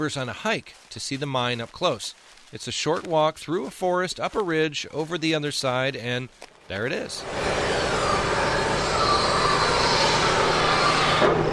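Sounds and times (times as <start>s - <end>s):
speech: 0.0s - 7.8s
big dump trucks and bulldozers hauling sand: 6.8s - 11.5s.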